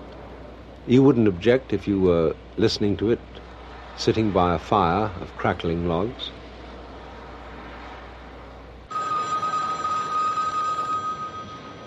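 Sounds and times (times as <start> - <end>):
speech: 0.8 - 3.4, 4.0 - 6.4
telephones ringing: 8.9 - 11.8.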